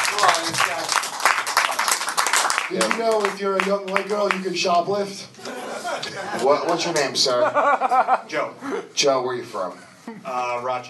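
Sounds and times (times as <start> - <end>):
comedy-show audience applause: 0.0 - 4.4
speech: 2.7 - 10.8
laughter: 5.4 - 8.9.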